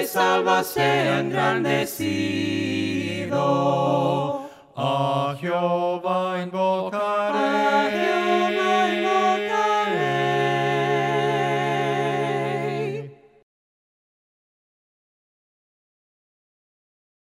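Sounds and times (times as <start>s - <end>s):
voices singing hymns a cappella: 0.0s - 13.4s.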